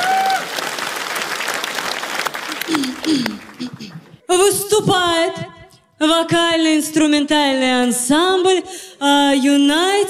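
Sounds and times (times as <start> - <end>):
audience applause: 0.0 - 4.2
speech: 2.7 - 10.0.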